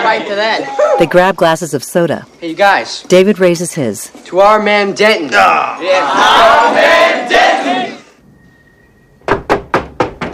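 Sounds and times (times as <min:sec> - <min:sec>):
speech: 0:00.1 - 0:07.8
knocking on a door: 0:09.2 - 0:10.3.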